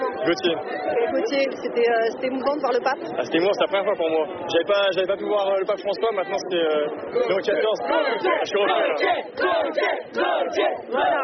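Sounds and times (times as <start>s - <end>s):
speech: 0.2s - 11.2s
crowd cheering and chanting for a young scout: 7.3s - 11.2s.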